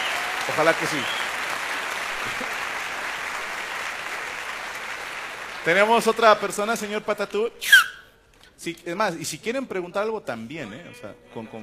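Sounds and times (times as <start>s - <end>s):
audience applause: 0.0s - 6.9s
speech: 0.5s - 1.3s, 2.2s - 2.6s, 5.6s - 7.8s, 8.6s - 11.6s.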